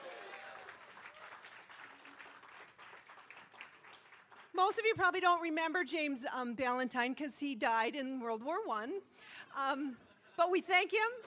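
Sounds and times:
audience applause at a VFW post event: 0.0s - 4.5s
speech: 4.6s - 11.2s.

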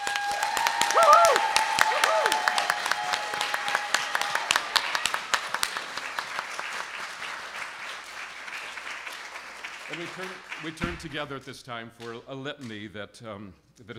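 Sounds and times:
whoops or whistles: 0.0s - 3.4s
audience applause: 0.0s - 11.3s
speech: 10.2s - 13.9s.

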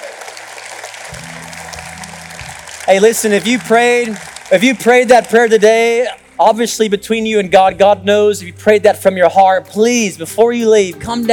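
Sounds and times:
audience applauding: 0.0s - 6.3s
speech: 2.9s - 11.3s.

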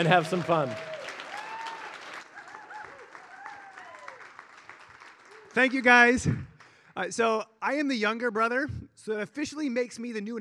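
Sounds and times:
speech: 0.0s - 0.9s, 5.6s - 10.3s
audience applause: 0.0s - 6.8s.

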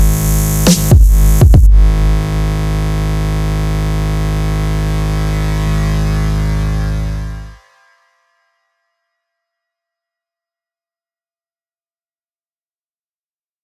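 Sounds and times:
instrumental music: 0.0s - 8.5s.

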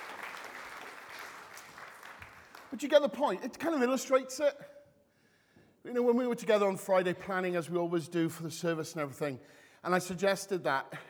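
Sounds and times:
audience clapping: 0.0s - 3.2s
speech: 2.7s - 4.8s, 5.8s - 11.0s.

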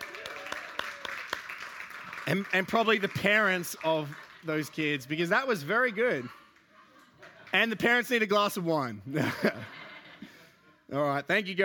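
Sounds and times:
round of applause: 0.0s - 5.0s
speech: 2.3s - 6.4s, 7.6s - 9.8s, 10.9s - 11.6s
laughter: 6.1s - 7.7s, 9.1s - 10.8s.

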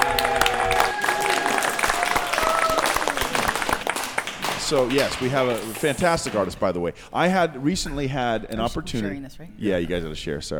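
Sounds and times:
audience applause: 0.0s - 6.5s
speech: 4.7s - 10.5s.

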